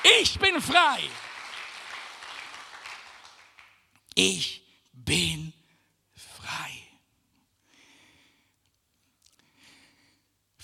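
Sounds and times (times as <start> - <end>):
faint audience applause: 0.0 - 3.9
speech: 0.2 - 1.3, 4.2 - 5.6.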